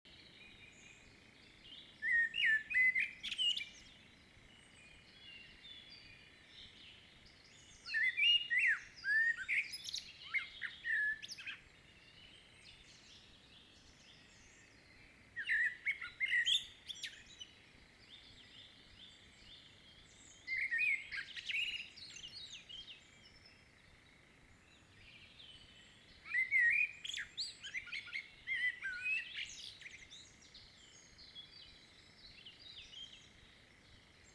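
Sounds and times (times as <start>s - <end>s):
common blackbird singing: 0.2s - 4.1s, 4.7s - 23.6s, 24.7s - 34.3s.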